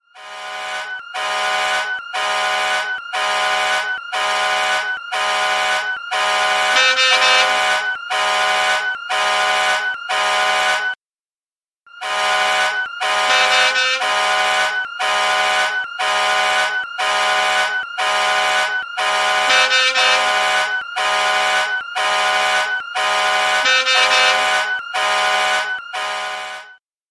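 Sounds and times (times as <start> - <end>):
alarm clock: 0.1 - 11.0, 12.0 - 26.8.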